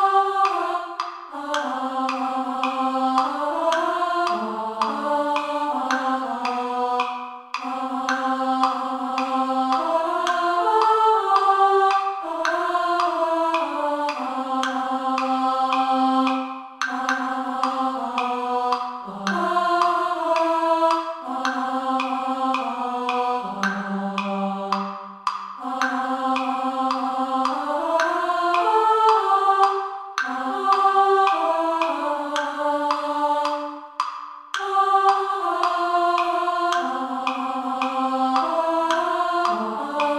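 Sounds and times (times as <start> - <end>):
women singing descant: 0.0 - 40.1.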